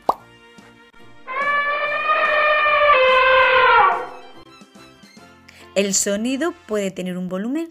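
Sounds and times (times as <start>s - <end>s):
elephant trumpeting loudly: 1.1s - 4.4s
speech: 5.8s - 7.6s.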